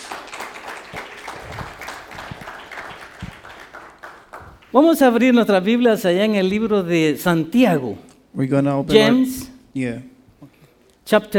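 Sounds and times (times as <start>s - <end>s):
crowd applauding: 0.0s - 4.8s
speech: 4.7s - 10.1s, 11.1s - 11.3s.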